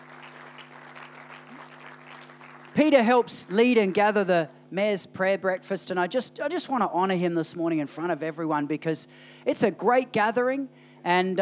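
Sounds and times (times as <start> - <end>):
round of applause: 0.0 - 4.1
speech: 2.8 - 11.3.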